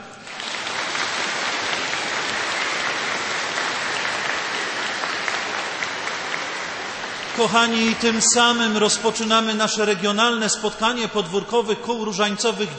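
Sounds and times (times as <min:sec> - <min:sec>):
sustained enthusiastic applause from a large audience: 0:00.0 - 0:09.2
speech: 0:07.4 - 0:12.7.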